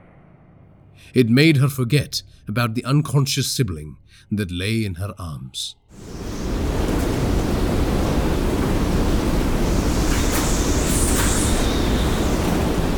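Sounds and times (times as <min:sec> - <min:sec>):
speech: 0:01.0 - 0:06.3
roaring rushing sound: 0:05.9 - 0:12.9.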